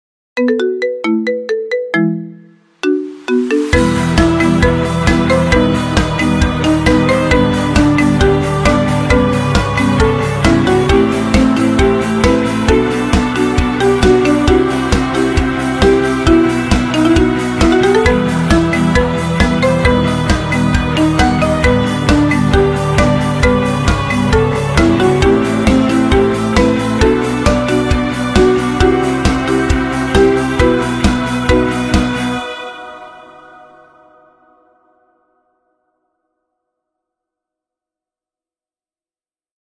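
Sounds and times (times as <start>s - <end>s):
iPhone marimba ringtone: 0.4s - 32.3s.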